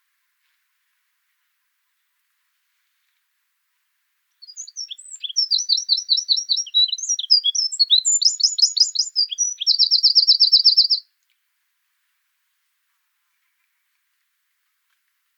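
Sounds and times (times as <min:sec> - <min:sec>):
Eurasian wren song: 0:04.4 - 0:11.0.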